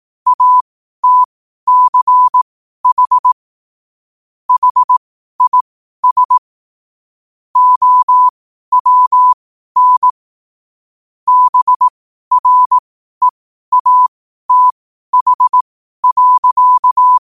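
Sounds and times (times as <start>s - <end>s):
morse code at 5 wpm: 0.3s - 3.4s, 4.5s - 6.4s, 7.6s - 10.1s, 11.3s - 12.8s, 13.7s - 17.2s.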